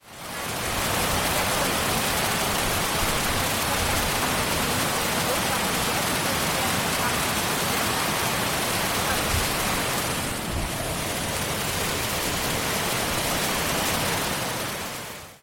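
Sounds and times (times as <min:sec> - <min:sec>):
stream crossing on the way to the Geraerhütte: 0:00.0 - 0:15.4.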